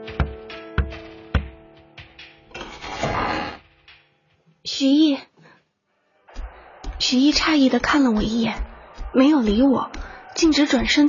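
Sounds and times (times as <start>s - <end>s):
door creaking as it is moved: 2.5s - 4.1s
speech: 4.8s - 5.2s, 7.1s - 11.0s.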